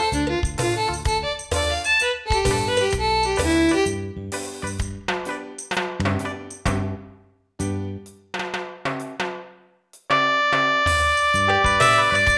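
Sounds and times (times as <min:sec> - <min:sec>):
concerto music: 0:00.0 - 0:07.0, 0:10.1 - 0:12.3.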